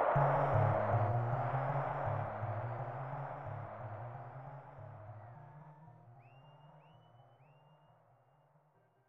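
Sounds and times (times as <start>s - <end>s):
in-game ambience: 0.2s - 6.8s.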